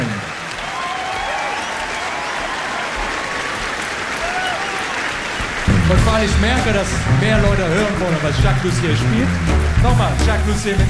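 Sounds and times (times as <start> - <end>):
audience applause: 0.0 - 10.8
speech: 6.1 - 10.8.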